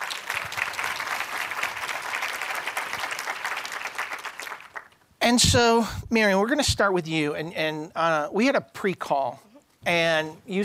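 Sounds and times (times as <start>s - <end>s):
audience applause welcoming panel speakers at a business event: 0.0s - 5.0s
speech: 5.3s - 10.6s.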